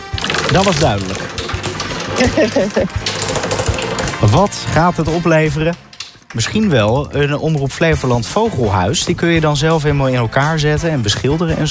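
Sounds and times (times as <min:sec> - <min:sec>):
prize wheel spinning and clicking: 0:00.0 - 0:08.4
speech: 0:00.5 - 0:01.3, 0:02.2 - 0:03.1, 0:04.2 - 0:11.6.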